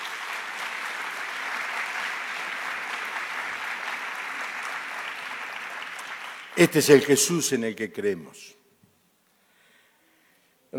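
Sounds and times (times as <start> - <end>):
audience applauding: 0.0 - 7.4
speech: 6.6 - 8.6.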